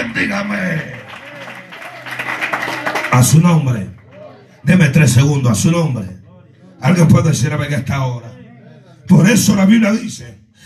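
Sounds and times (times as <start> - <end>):
audience clapping: 0.0 - 4.5
speech: 0.1 - 1.1, 3.1 - 4.0, 4.6 - 6.2, 6.8 - 8.3, 9.1 - 10.6.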